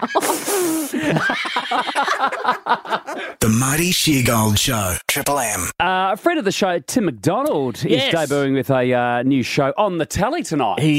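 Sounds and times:
laughter: 0:00.0 - 0:03.4
speech: 0:00.0 - 0:10.9
quick sniff: 0:00.2 - 0:01.0.

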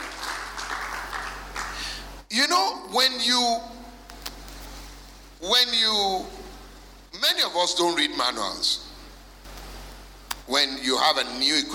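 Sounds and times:
crowd of people applauding: 0:00.0 - 0:02.0
speech: 0:02.3 - 0:03.7, 0:05.4 - 0:06.4, 0:07.2 - 0:08.8, 0:10.5 - 0:11.7.

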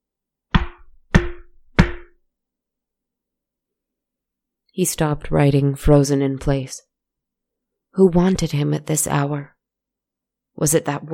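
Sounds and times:
knocking on a door: 0:00.6 - 0:02.2
speech: 0:04.8 - 0:06.9, 0:08.0 - 0:09.6, 0:10.6 - 0:11.1.

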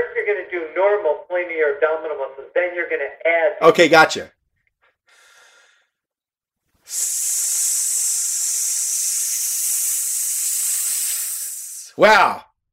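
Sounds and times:
speech: 0:00.3 - 0:04.4, 0:06.9 - 0:07.7, 0:12.0 - 0:12.5
forceful hissing exhale while clenching muscles: 0:06.8 - 0:12.0.

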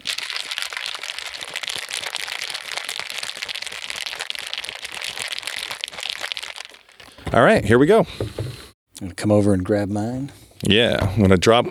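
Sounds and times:
ice rattling in a cocktail shaker while shaking a martini: 0:00.0 - 0:07.1
speech: 0:07.3 - 0:08.4, 0:09.0 - 0:11.6.

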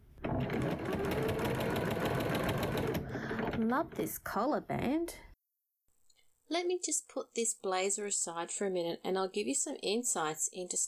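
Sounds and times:
sewing machine stitching a seam on a blazer: 0:00.1 - 0:04.3
speech: 0:03.6 - 0:05.3, 0:06.5 - 0:10.8.

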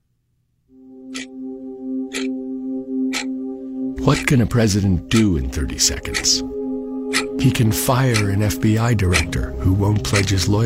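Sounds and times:
synthesizer drone: 0:00.7 - 0:10.6
ominous ticking clock: 0:01.1 - 0:01.3, 0:02.1 - 0:02.4, 0:03.1 - 0:03.3, 0:04.0 - 0:06.4, 0:07.0 - 0:10.6
speech: 0:04.0 - 0:06.6, 0:07.4 - 0:10.6.

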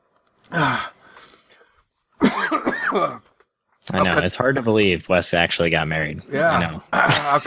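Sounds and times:
speech: 0:00.5 - 0:00.9, 0:02.4 - 0:03.3, 0:03.9 - 0:07.4
person coughing and gasping after choking on inhaled beer: 0:02.2 - 0:03.4, 0:06.6 - 0:07.4.

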